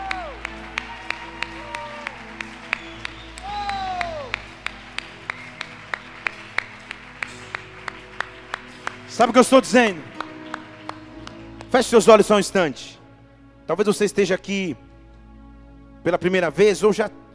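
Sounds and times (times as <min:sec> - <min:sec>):
audience applause: 0:00.0 - 0:12.0
speech: 0:09.2 - 0:10.1, 0:11.7 - 0:13.0, 0:13.7 - 0:14.8, 0:16.0 - 0:17.3.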